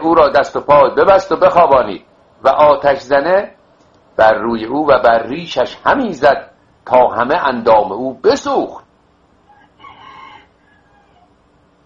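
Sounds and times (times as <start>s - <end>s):
speech: 0.0s - 3.6s, 4.2s - 8.8s
rooster crowing: 9.4s - 11.5s.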